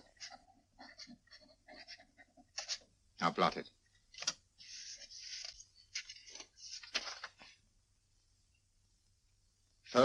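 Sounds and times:
pen scratching across paper signing a name: 0.0 - 2.8
speech: 3.2 - 3.8.

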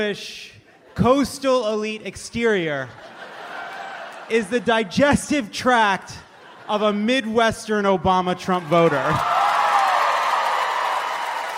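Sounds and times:
speech: 0.0 - 3.3, 4.3 - 9.4
laughter: 2.4 - 7.4, 8.4 - 9.4
audience applause: 8.6 - 11.5.

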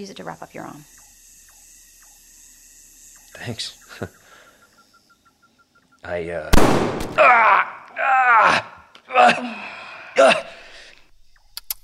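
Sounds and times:
speech: 0.0 - 1.0, 3.4 - 4.2, 6.0 - 10.5
gunshot: 6.5 - 7.2
person gasping and straining in pain: 7.2 - 10.8.

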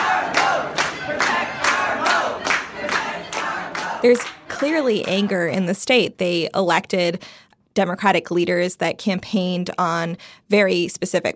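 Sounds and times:
protesters chanting at the state capitol: 0.0 - 4.8
speech: 4.0 - 11.3.

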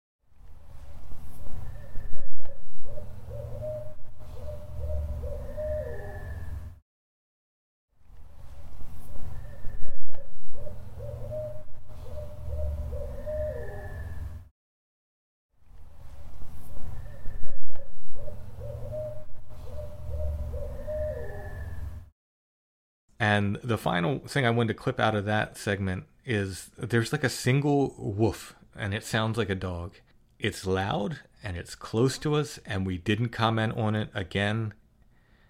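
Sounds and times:
owl hooting: 1.5 - 6.7, 9.2 - 14.4, 16.8 - 22.0
speech: 23.2 - 34.8.

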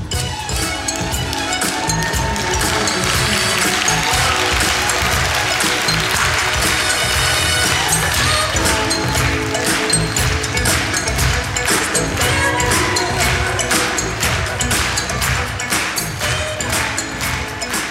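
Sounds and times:
audience clapping along to music: 0.1 - 17.8.

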